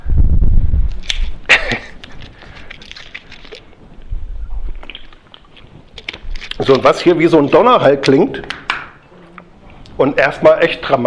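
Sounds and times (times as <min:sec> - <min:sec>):
clicks and rustles: 0:00.9 - 0:09.0
plastic water bottle crinkling: 0:00.9 - 0:09.0
speech: 0:06.6 - 0:08.6, 0:10.0 - 0:11.0.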